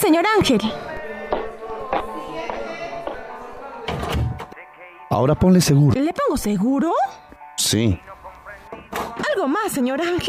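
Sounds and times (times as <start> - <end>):
speech: 0.1 - 1.0, 5.2 - 8.1, 9.4 - 10.2
door closing: 1.4 - 4.5.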